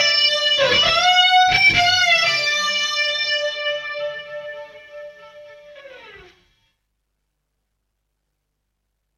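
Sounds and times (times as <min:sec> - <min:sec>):
guitars with chorus effect on Korg A1: 0:00.0 - 0:06.5.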